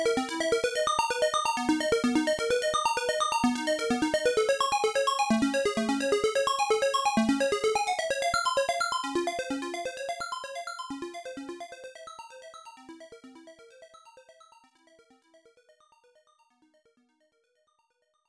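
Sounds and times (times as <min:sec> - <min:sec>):
start demo main background music: 0:00.0 - 0:10.3.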